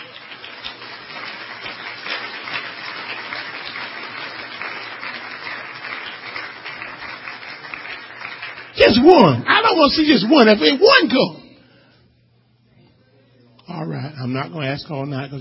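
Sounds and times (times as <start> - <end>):
audience clapping: 0.0 - 11.3
speech: 8.9 - 11.4, 14.3 - 15.4.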